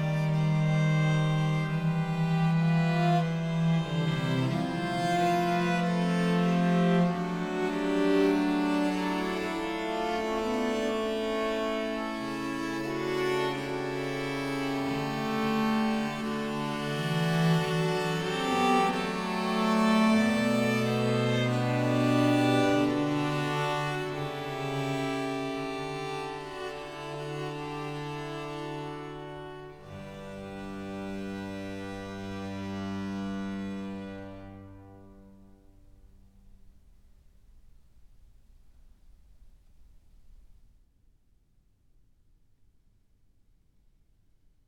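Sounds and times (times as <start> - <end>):
organ music: 0.0 - 35.4.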